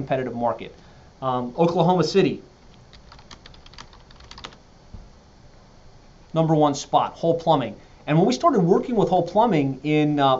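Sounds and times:
speech: 0.0s - 2.5s, 6.3s - 10.3s
typing a search on a computer keyboard: 2.9s - 4.6s.

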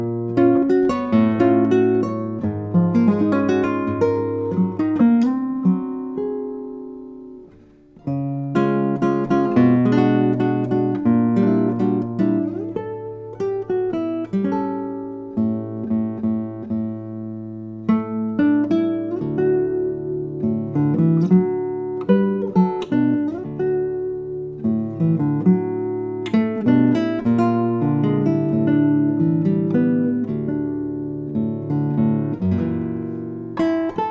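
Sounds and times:
nylon-string classical concert guitar playing: 0.0s - 34.0s.

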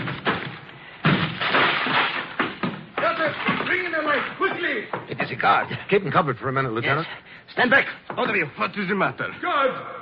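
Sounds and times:
door being broken down: 0.0s - 4.6s
speech: 3.8s - 9.9s.

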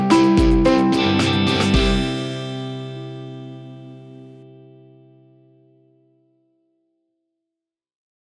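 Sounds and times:
ukulele: 0.0s - 3.2s.

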